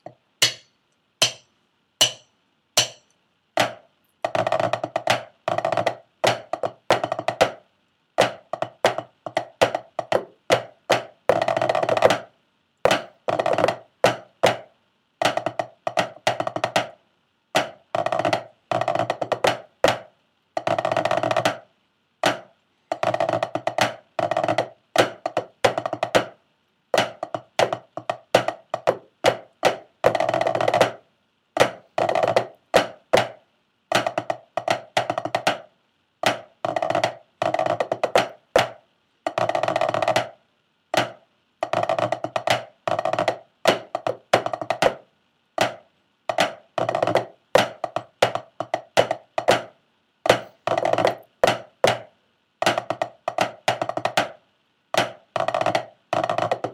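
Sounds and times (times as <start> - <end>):
tenor snare drum: 0.0 - 7.6, 8.2 - 12.3, 12.9 - 17.0, 17.6 - 21.6, 22.2 - 26.4, 27.0 - 31.0, 31.6 - 40.4, 41.0 - 45.0, 45.6 - 49.7, 50.3 - 54.4, 55.0 - 56.7.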